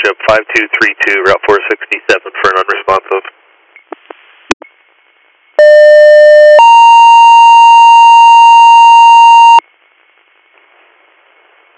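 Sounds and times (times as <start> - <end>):
speech: 0.3 - 3.3
emergency dispatch two-tone pager alert: 5.6 - 9.6.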